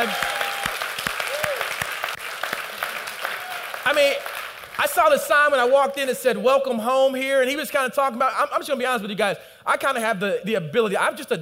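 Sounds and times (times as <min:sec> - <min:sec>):
audience hand clapping: 0:00.0 - 0:05.2
speech: 0:03.9 - 0:11.3.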